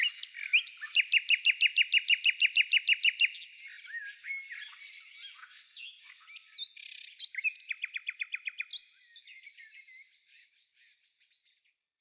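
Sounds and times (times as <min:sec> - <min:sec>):
frogs croaking: 0:00.0 - 0:07.7
nightingale singing: 0:00.0 - 0:11.7.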